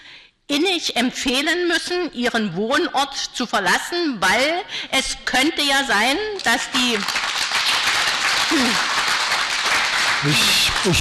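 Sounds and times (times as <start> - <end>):
speech: 0.8 - 7.2, 8.5 - 8.8, 10.2 - 10.9
audience applause at a public meeting: 7.0 - 10.9.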